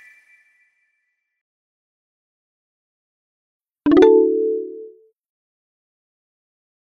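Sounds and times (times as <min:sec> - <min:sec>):
notification sound: 0:03.9 - 0:05.0.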